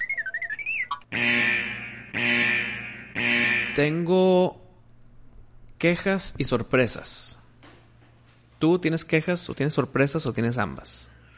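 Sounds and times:
warbling robotic electronic chirps: 0.0 - 3.2
loud sustained buzzing alarm blasts: 1.0 - 4.1
speech: 3.8 - 4.6, 5.8 - 7.4, 8.6 - 11.1.

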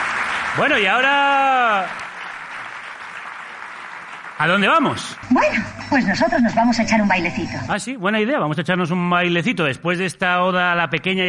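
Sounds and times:
studio audience applauding on a television programme: 0.0 - 6.3
speech: 0.6 - 2.1, 4.4 - 11.2.

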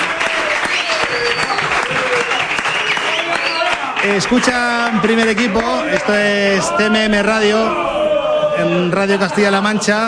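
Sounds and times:
audience applause: 0.0 - 6.9
speech: 4.0 - 7.8, 8.6 - 10.0.

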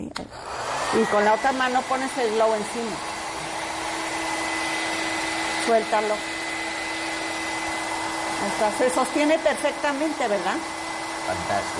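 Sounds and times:
speech: 0.2 - 3.1, 5.6 - 6.3, 8.4 - 10.7, 11.3 - 11.7
hair dryer blowing: 0.2 - 11.7.

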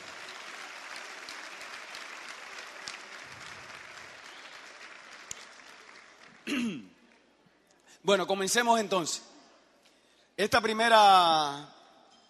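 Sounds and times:
audience applause: 0.0 - 6.6
speech: 6.5 - 6.9, 8.0 - 9.3, 10.4 - 11.8.

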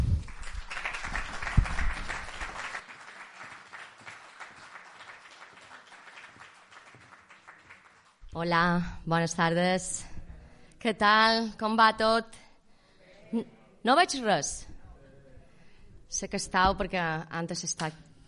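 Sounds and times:
audience applauding: 0.0 - 8.2
speech: 8.4 - 10.1, 10.8 - 12.4, 13.3 - 14.7, 16.1 - 18.0.

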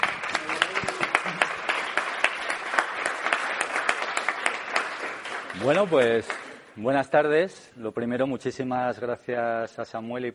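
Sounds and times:
welcome applause: 0.0 - 6.6
speech: 5.6 - 10.3.

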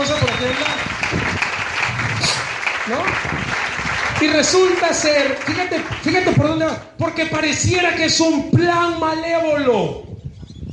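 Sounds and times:
audience applause: 0.0 - 6.4
speech: 4.2 - 10.1.

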